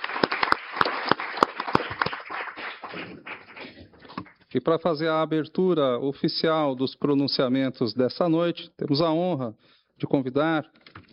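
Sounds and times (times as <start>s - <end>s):
audience applause: 0.0s - 4.3s
speech: 4.5s - 10.8s.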